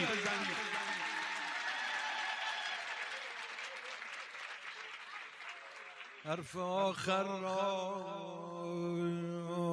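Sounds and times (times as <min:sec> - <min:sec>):
audience clapping: 0:00.0 - 0:06.9
speech: 0:06.2 - 0:09.6.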